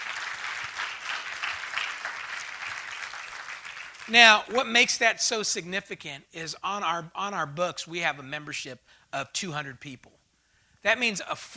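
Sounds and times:
audience applause: 0.0 - 4.4
speech: 4.1 - 10.2, 10.8 - 11.5.

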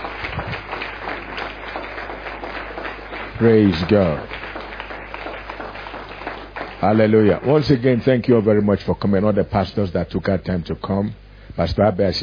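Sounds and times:
audience clapping: 0.0 - 9.3
speech: 3.4 - 4.3, 6.8 - 12.2.

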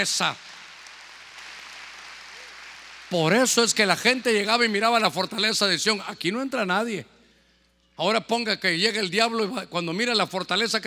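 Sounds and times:
speech: 0.0 - 0.5, 3.1 - 7.2, 8.0 - 10.8
audience clapping: 0.0 - 4.7.

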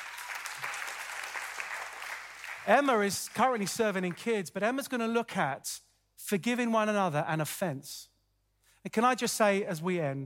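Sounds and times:
audience clapping: 0.0 - 4.4
speech: 2.6 - 8.1, 8.8 - 10.2.

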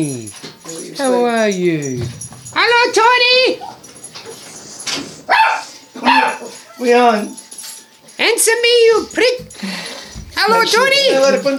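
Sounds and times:
speech: 0.0 - 0.4, 1.0 - 3.7, 6.2 - 7.4, 8.2 - 11.5
dogs barking: 0.0 - 6.9.

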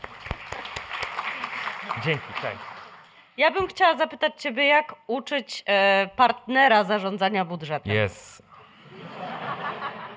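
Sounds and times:
audience applause: 0.0 - 3.1
speech: 1.9 - 2.7, 3.4 - 8.4
laughter: 8.7 - 10.1.

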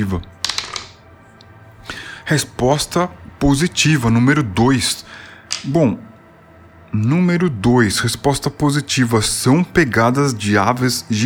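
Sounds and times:
speech: 0.0 - 0.4, 2.3 - 6.1, 6.9 - 11.2
six-sided die clattering across a table: 0.4 - 1.0.

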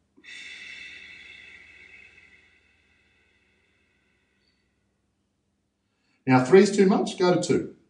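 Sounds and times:
slow relaxed belly breath: 0.0 - 5.1, 5.8 - 6.2
speech: 6.3 - 7.8.

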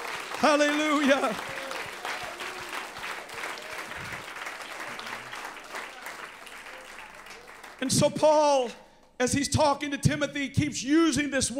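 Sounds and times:
people clapping: 0.0 - 8.4
speech: 0.4 - 1.6, 7.8 - 11.5.

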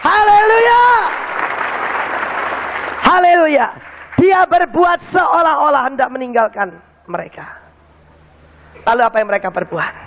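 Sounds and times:
audience applause: 0.6 - 4.2
speech: 3.5 - 7.6, 8.8 - 10.0.

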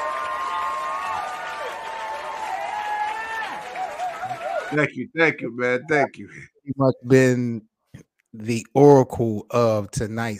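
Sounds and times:
applause: 0.0 - 4.9
speech: 4.7 - 7.7, 8.4 - 10.3.

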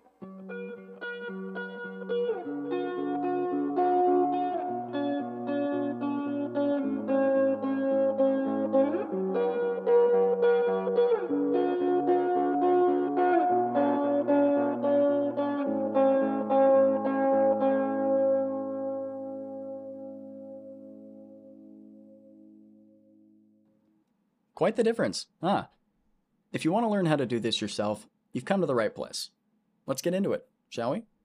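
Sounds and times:
electric guitar played through a wet-dry-wet rig with echo and modulation: 0.0 - 23.5
speech: 24.7 - 25.7, 26.5 - 31.1.

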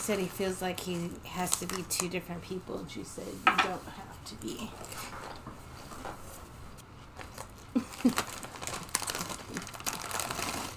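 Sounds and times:
speech: 0.0 - 5.2
crunching on snack cluster: 7.2 - 10.7.

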